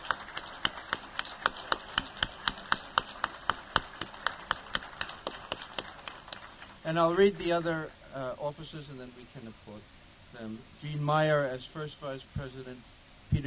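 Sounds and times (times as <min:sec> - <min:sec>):
rhythmic hand clapping: 0:00.0 - 0:06.9
speech: 0:06.9 - 0:13.4.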